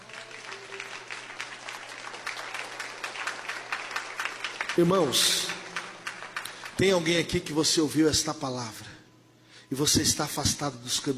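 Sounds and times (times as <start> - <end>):
audience applause: 0.0 - 7.4
speech: 4.8 - 5.5, 6.8 - 8.8, 9.7 - 11.1.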